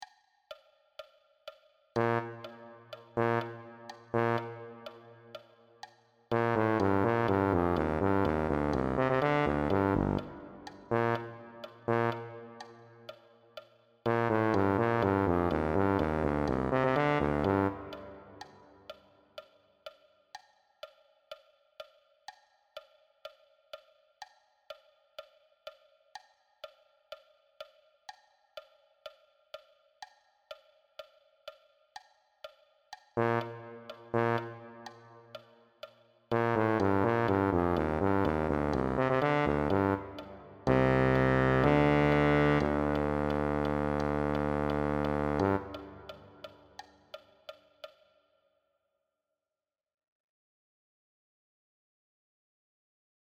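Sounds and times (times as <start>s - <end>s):
tuba: 2.0s - 5.6s, 6.3s - 13.2s, 14.1s - 18.7s, 33.2s - 35.6s, 36.3s - 46.6s.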